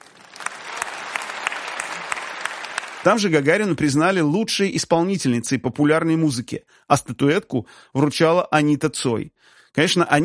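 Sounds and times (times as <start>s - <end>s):
audience applause at an awards ceremony: 0.0s - 3.7s
speech: 3.0s - 10.2s.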